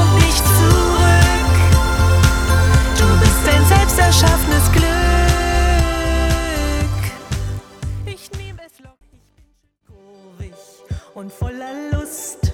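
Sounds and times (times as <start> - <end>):
schlager party music: 0.0 - 8.6.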